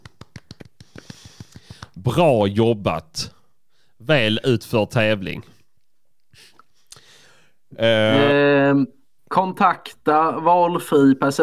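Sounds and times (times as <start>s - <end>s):
applause: 0.0s - 2.0s
speech: 2.0s - 3.4s, 4.0s - 5.5s, 7.8s - 11.4s.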